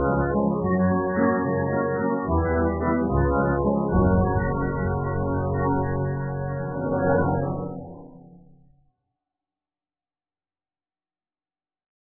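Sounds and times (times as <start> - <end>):
silly villain music: 0.0 - 8.7.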